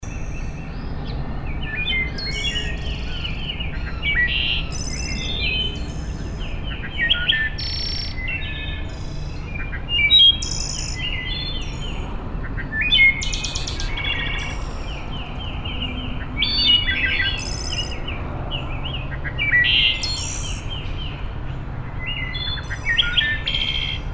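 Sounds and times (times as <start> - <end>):
wood thrush singing flute-like phrases: 0.0 - 21.2, 21.8 - 24.1.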